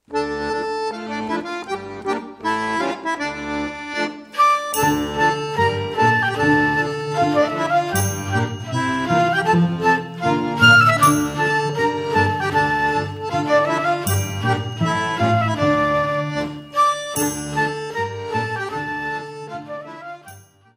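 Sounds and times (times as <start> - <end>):
schottische folk dance music: 0.0 - 20.6.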